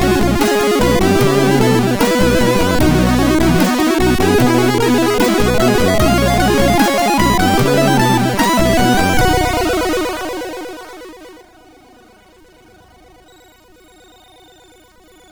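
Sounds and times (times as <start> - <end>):
SID MOS6581R2 chip music intro: 0.0 - 11.4.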